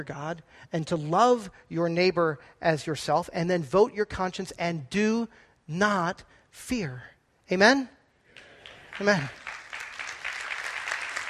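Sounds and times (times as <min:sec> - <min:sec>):
speech: 0:00.0 - 0:08.0, 0:09.0 - 0:09.4
audience clapping: 0:08.3 - 0:11.2.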